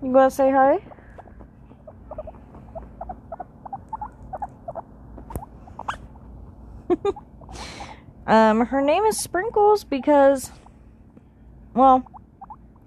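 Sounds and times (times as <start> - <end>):
speech: 0.0 - 0.9, 7.0 - 7.3, 8.3 - 10.6, 11.8 - 12.2
guinea pig chewing on cords: 0.3 - 6.1, 11.9 - 12.8.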